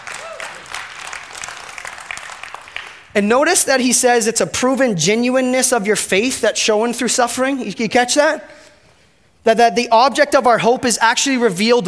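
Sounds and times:
audience clapping: 0.0 - 3.1
speech: 3.2 - 8.6, 9.4 - 11.8.

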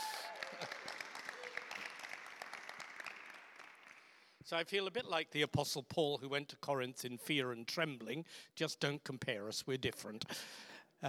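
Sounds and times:
single person applauding: 0.0 - 4.4
speech: 4.5 - 11.0.

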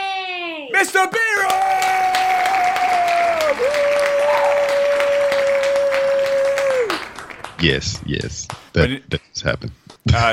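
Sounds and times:
speech: 0.8 - 2.0, 7.6 - 10.3
applause sound effect: 1.4 - 9.2.

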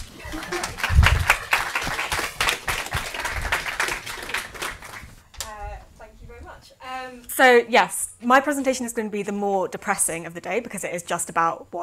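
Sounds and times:
audience applause: 0.0 - 5.2
speech: 7.4 - 11.8.

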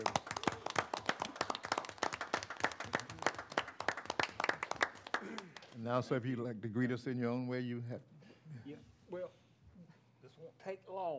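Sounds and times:
audience applause: 0.0 - 5.7
speech: 5.8 - 8.1.

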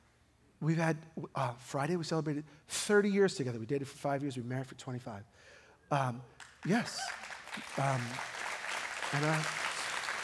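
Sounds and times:
speech: 0.6 - 8.4, 9.1 - 9.6
audience applause: 6.6 - 10.2.

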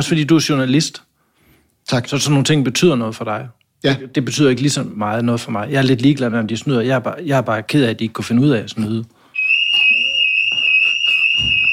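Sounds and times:
speech: 0.0 - 1.1, 1.9 - 9.2
joke alarm sound effect: 9.4 - 11.7.

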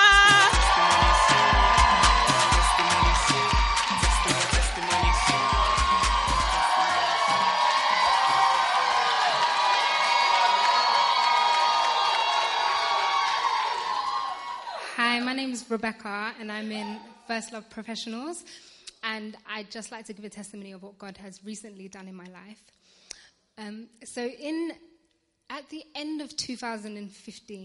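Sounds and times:
steady low thumping beat: 0.0 - 7.6
church audience cheering and applauding: 0.0 - 14.9
speech: 15.8 - 22.8, 23.6 - 24.9, 25.5 - 27.6.

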